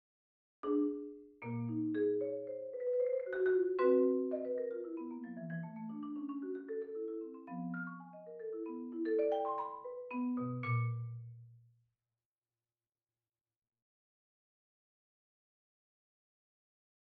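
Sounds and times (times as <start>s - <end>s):
marimba: 0.6s - 11.5s.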